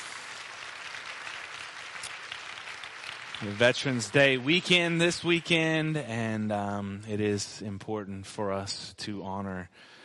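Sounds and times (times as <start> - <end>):
audience applause: 0.0 - 5.8
speech: 3.4 - 10.0.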